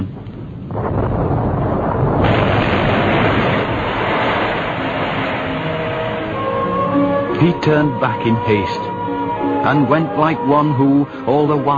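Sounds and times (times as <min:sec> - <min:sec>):
great clap of thunder: 0:00.0 - 0:07.7
speech: 0:07.4 - 0:08.9, 0:09.6 - 0:11.7.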